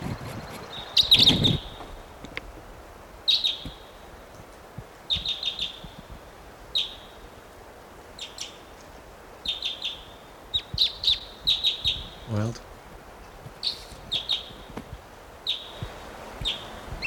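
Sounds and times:
wild bird chirping: 0.0 - 2.2, 3.2 - 4.3, 5.1 - 6.0, 6.7 - 7.3, 8.2 - 8.7, 9.4 - 12.6, 13.6 - 14.7, 15.4 - 17.0.

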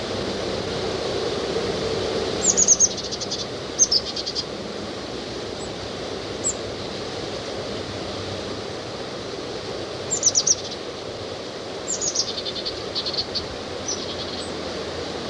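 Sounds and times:
steady rushing noise: 0.0 - 15.2
tufted titmouse calling: 2.3 - 4.6, 6.4 - 6.6, 10.0 - 10.9, 11.8 - 14.7.

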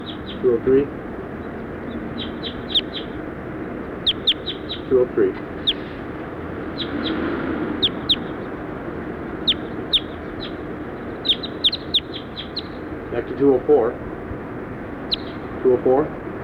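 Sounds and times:
speech: 0.4 - 1.0, 4.9 - 5.5, 13.2 - 14.1, 15.6 - 16.2
recorded bird call: 1.5 - 3.2, 3.9 - 6.0, 6.7 - 8.7, 9.3 - 13.0, 15.0 - 15.8.

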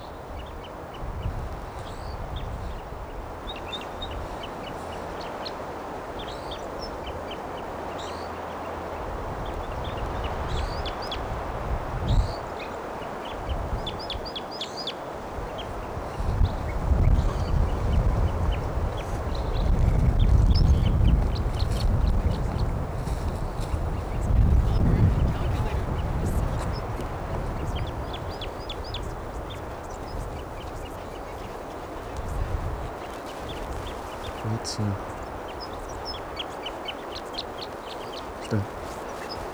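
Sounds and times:
wild bird calling: 0.0 - 39.5
speech: 34.8 - 35.0.

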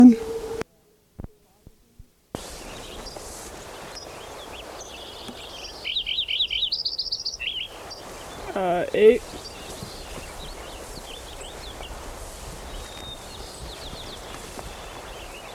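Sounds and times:
Lincoln's sparrow song: 0.0 - 1.6, 2.4 - 15.5
constant outdoor hiss: 0.0 - 15.5
soft clicks and thumps: 1.2 - 2.5
speech: 9.0 - 9.4.

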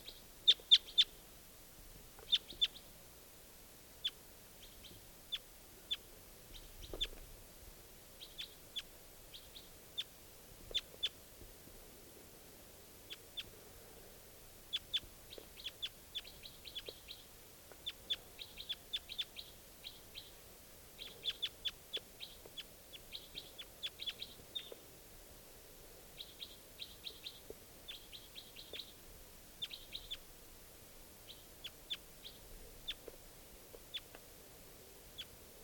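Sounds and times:
wild bird calling with high-pitched chirps: 0.0 - 1.2, 2.2 - 2.9, 4.0 - 7.2, 8.2 - 10.1, 14.7 - 20.4, 21.0 - 24.8, 26.2 - 29.0, 29.6 - 30.3, 31.2 - 33.1, 33.7 - 34.2.

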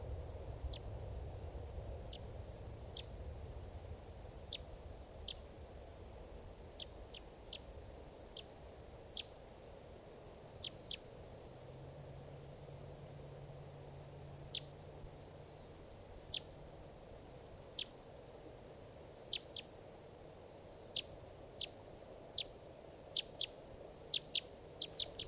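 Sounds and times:
faint low rumble: 0.0 - 25.2
steady hiss: 0.0 - 25.2
bird chirping: 2.9 - 3.1, 4.5 - 5.4, 6.6 - 7.7, 8.3 - 8.5, 9.1 - 9.4, 10.4 - 11.1, 14.4 - 16.7, 17.7 - 18.0, 19.2 - 19.7, 20.4 - 25.2.

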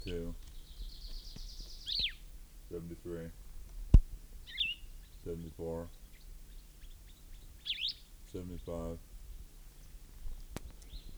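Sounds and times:
recorded bird call chirp: 0.0 - 3.4, 4.3 - 9.0, 10.7 - 11.1
speech: 3.0 - 3.4, 5.2 - 6.0, 8.4 - 9.1.

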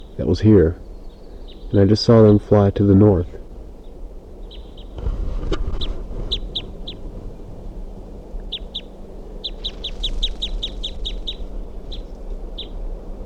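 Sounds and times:
low steady rumble of noise: 0.0 - 13.2
speech: 0.2 - 0.9, 1.7 - 3.4
wild bird calling in high-pitched chips: 0.8 - 2.5, 3.8 - 5.0, 5.7 - 7.0, 8.4 - 12.8.

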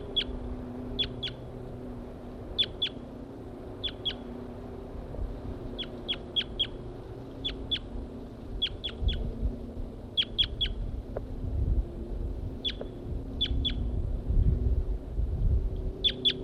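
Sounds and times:
wild male bird singing: 0.0 - 1.5, 2.6 - 3.0, 3.8 - 4.3, 5.7 - 7.9, 8.6 - 9.3, 10.1 - 10.8, 12.6 - 13.9, 16.0 - 16.4
low constant rumble: 0.0 - 16.4.

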